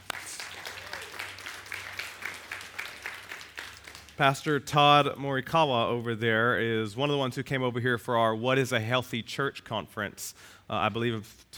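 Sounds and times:
church congregation applauding a visiting Baptist pastor: 0:00.0 - 0:05.0
speech: 0:04.2 - 0:11.5.

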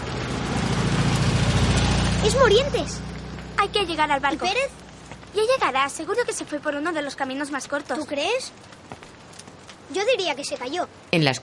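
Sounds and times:
small car driving past: 0:00.0 - 0:05.4
speech: 0:02.2 - 0:08.8, 0:09.9 - 0:11.4.

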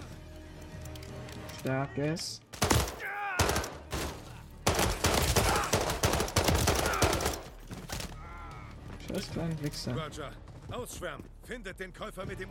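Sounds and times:
speech: 0:01.6 - 0:02.4, 0:09.2 - 0:12.4
rapid pistol gunfire in Call of Duty Modern Warfare 3: 0:02.6 - 0:03.9, 0:04.6 - 0:07.5.

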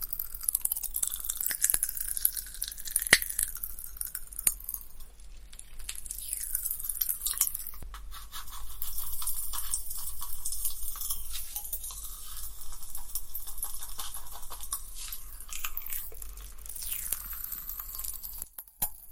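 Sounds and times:
soft wet mouth sounds: 0:00.0 - 0:18.6
popping candy crackling while being eaten: 0:00.0 - 0:19.1.

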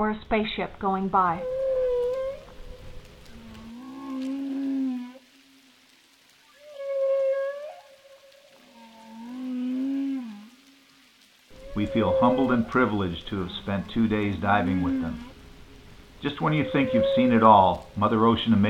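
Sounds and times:
speech: 0:00.0 - 0:01.6, 0:11.8 - 0:15.3, 0:16.2 - 0:18.6
humpback whale song underwater: 0:01.2 - 0:05.7, 0:06.4 - 0:10.9, 0:11.6 - 0:18.4.

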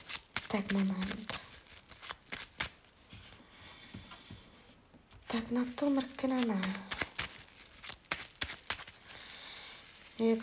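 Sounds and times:
tarot cards being shuffled: 0:00.0 - 0:03.4, 0:05.2 - 0:10.4
speech: 0:00.5 - 0:01.4, 0:05.3 - 0:06.9, 0:10.2 - 0:10.4.

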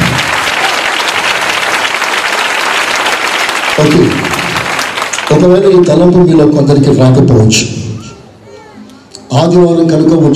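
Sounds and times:
congregation clapping during a Sunday church worship service: 0:00.0 - 0:06.4
speech: 0:03.8 - 0:04.4, 0:05.4 - 0:07.8, 0:09.3 - 0:10.3.

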